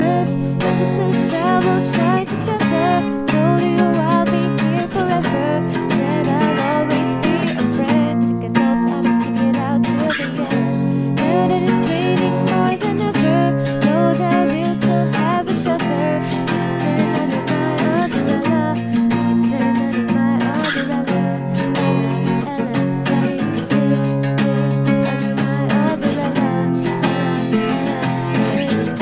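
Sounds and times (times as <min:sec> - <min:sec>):
acoustic music: 0:00.0 - 0:29.0.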